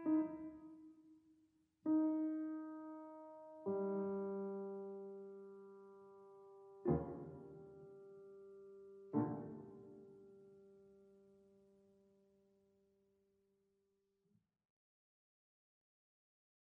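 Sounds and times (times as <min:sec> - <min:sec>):
piano music: 0:00.0 - 0:00.8, 0:01.9 - 0:05.8, 0:06.5 - 0:10.5.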